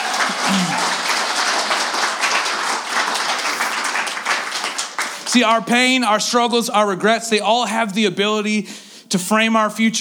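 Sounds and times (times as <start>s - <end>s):
audience clapping: 0.0s - 5.8s
speech: 0.5s - 0.8s, 5.3s - 10.0s.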